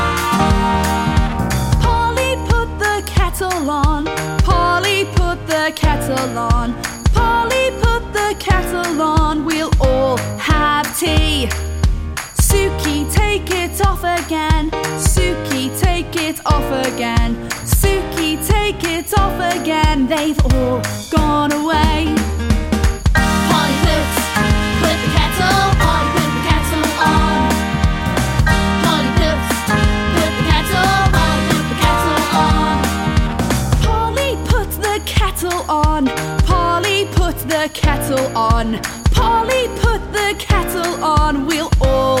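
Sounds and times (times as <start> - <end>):
sing-along songs: 0.2 - 11.7, 12.3 - 22.4, 23.2 - 42.1.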